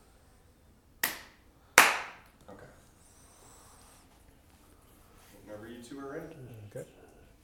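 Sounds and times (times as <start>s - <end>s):
sharp hand clap to sync cameras before an interview: 1.0s - 2.4s
speech: 5.9s - 6.9s.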